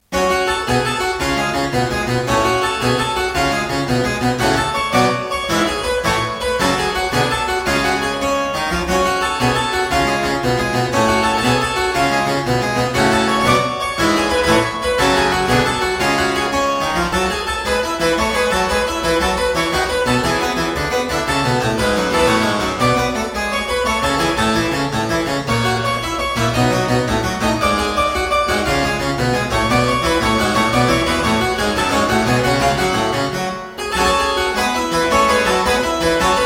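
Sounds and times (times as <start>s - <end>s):
baroque suite gigue in G minor: 0.0s - 36.4s.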